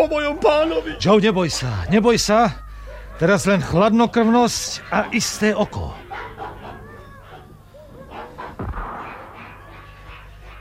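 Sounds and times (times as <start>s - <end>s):
speech: 0.0s - 2.6s, 3.2s - 6.0s
gunshot: 8.6s - 10.6s.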